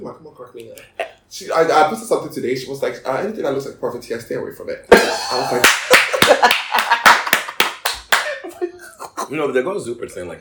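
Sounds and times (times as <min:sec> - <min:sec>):
speech: 0:00.0 - 0:05.8, 0:09.3 - 0:10.3
laughter: 0:04.9 - 0:09.4
loud hand clapping: 0:05.3 - 0:08.4.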